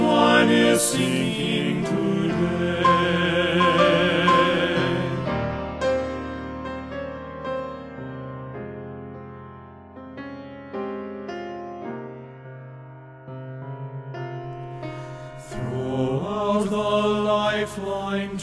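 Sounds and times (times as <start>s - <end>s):
men's chorus singing: 0.0s - 5.5s, 15.4s - 18.4s.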